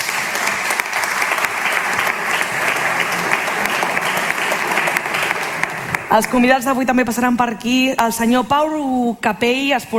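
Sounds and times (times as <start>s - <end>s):
audience applause: 0.0s - 6.8s
speech: 6.1s - 9.9s.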